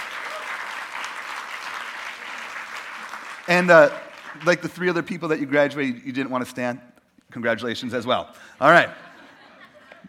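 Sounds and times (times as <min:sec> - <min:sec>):
audience applause: 0:00.0 - 0:04.8
speech: 0:03.5 - 0:09.1
laughter: 0:08.6 - 0:10.0.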